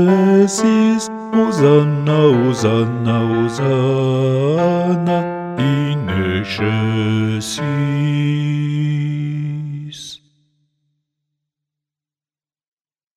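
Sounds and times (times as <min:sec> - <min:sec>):
bass guide chant: 0:00.0 - 0:10.2.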